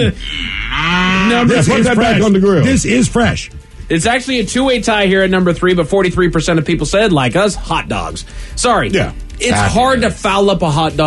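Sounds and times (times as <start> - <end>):
cow mooing: 0.0 - 2.0
speech: 0.0 - 11.0.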